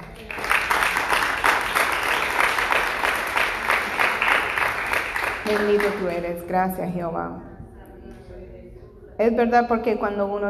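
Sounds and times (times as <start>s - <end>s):
audience applause: 0.0s - 6.2s
speech: 5.5s - 7.5s, 9.2s - 10.4s.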